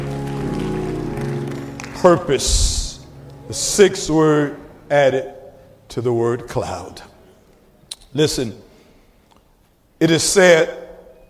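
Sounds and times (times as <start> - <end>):
audience clapping: 0.0 - 3.4
speech: 2.0 - 2.8, 3.5 - 7.1, 8.1 - 8.6, 10.0 - 10.8.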